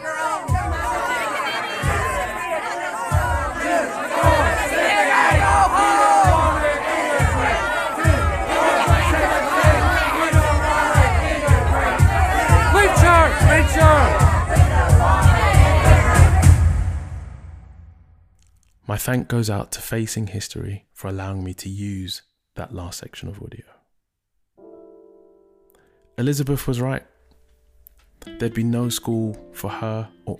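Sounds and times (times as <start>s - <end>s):
mob of many voices screaming and shouting: 0.0s - 16.7s
steady pounding beat: 0.0s - 18.1s
speech: 19.0s - 23.8s, 26.2s - 27.1s, 28.2s - 30.3s.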